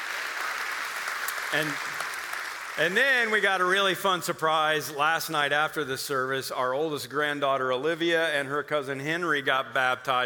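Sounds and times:
church service audience applauding baptisms: 0.0 - 4.0
speech: 1.5 - 1.9, 2.8 - 10.2
person's voice: 2.8 - 10.2.

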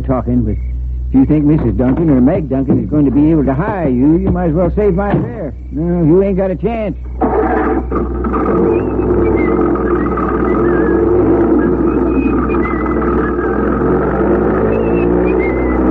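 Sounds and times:
speech: 0.0 - 9.8
low engine rumble: 0.0 - 15.8
person whistling a tune: 8.7 - 15.8.

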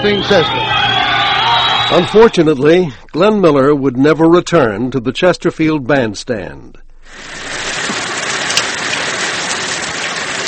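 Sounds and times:
speech: 0.0 - 0.8, 1.9 - 7.4
steady rain falling: 7.1 - 10.4.

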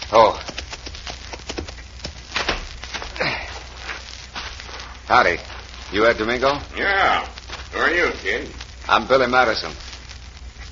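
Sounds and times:
horse hooves clopping as a rider arrives at a ranch house: 0.3 - 2.6
speech: 5.1 - 9.9.

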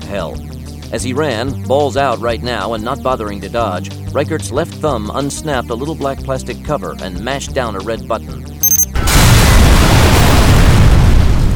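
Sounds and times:
speech: 0.1 - 8.5
shaped charge explosion: 9.1 - 11.5.

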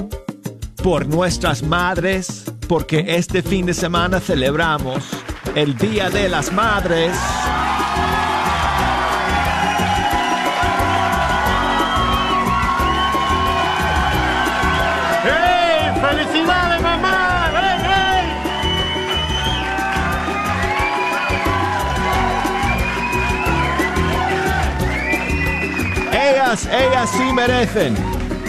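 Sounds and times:
speech: 0.8 - 8.1, 26.5 - 28.1
audience applause and cheering: 4.5 - 28.4.

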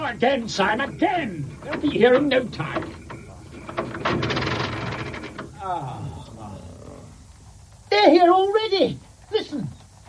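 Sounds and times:
speech: 0.1 - 3.0, 5.6 - 6.2, 7.9 - 9.8
car engine cranking: 0.6 - 5.6.

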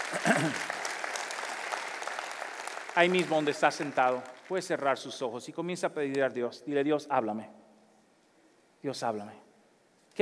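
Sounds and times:
audience applause: 0.0 - 5.0
speech: 0.1 - 0.8, 3.0 - 7.6, 8.8 - 9.4.

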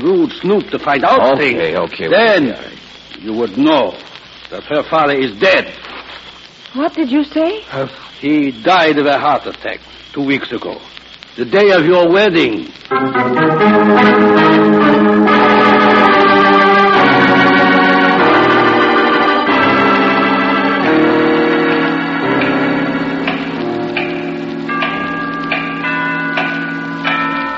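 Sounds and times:
speech: 0.0 - 15.5
tower clock bell striking: 12.9 - 27.5.

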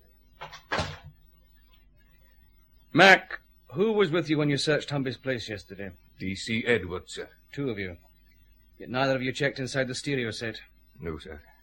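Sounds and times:
door being closed: 0.4 - 1.2
speech: 3.0 - 8.1, 8.8 - 11.5.

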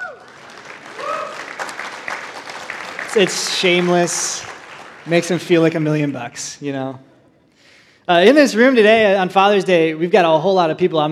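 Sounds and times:
audience applauding: 0.0 - 6.4
speech: 3.1 - 7.1, 8.1 - 11.1.

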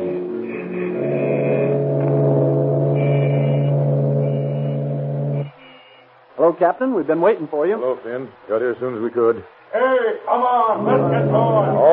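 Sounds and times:
car horns honking in a long line of motorists: 0.1 - 6.4
speech: 6.5 - 11.9.

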